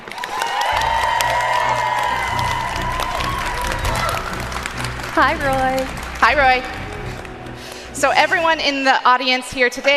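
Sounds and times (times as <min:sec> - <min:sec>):
audience whooping: 0:00.0 - 0:06.2
audience at a live event clapping to welcome a guest: 0:00.0 - 0:08.8
speech: 0:05.2 - 0:06.8, 0:08.0 - 0:09.9.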